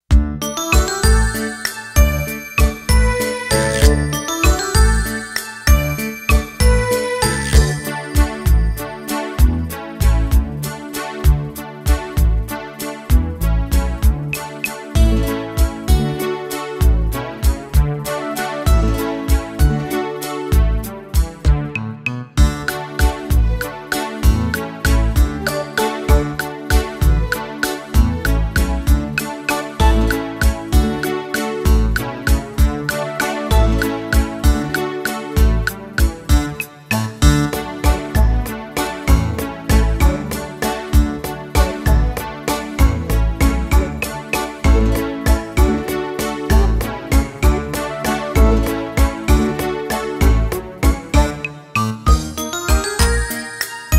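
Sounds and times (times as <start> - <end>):
instrumental music: 0.0 - 53.9.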